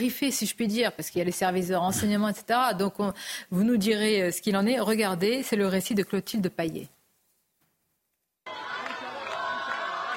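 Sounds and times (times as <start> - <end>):
speech: 0.0 - 7.0
crowd cheering: 8.5 - 10.1.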